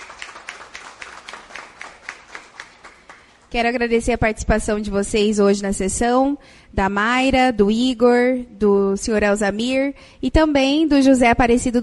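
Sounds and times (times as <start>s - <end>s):
audience applause: 0.0s - 3.4s
speech: 3.5s - 11.8s.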